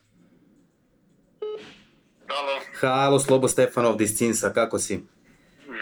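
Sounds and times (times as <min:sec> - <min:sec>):
telephone dialing beeps to place a call: 0:01.4 - 0:01.7
speech: 0:02.8 - 0:05.2.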